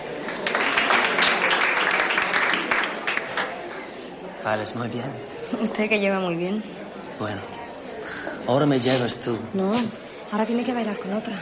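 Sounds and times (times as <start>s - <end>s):
ballroom crowd clapping after musicians finish a dance piece: 0.2s - 3.9s
speech: 4.5s - 7.6s, 8.2s - 11.4s.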